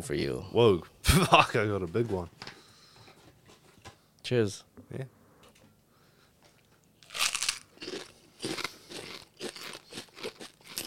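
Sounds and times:
speech: 0.0 - 2.5, 4.3 - 5.2
crunching of crackers being chewed: 7.0 - 10.8.

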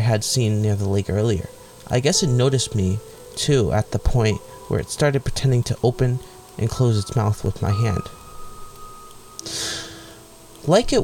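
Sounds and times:
speech: 0.1 - 8.2, 10.6 - 11.0
speaker taking a sharp audible breath: 9.4 - 10.3.

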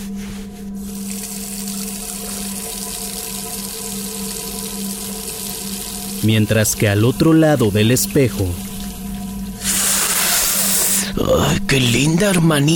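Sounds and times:
tap water running into a bathroom sink while someone washes: 0.9 - 11.0
speech: 6.2 - 8.6, 11.2 - 12.7.

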